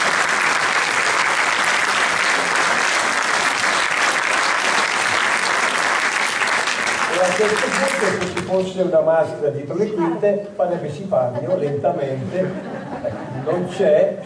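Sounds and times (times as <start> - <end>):
audience applause: 0.0 - 8.7
speech: 7.2 - 14.2
laughter: 10.8 - 14.2.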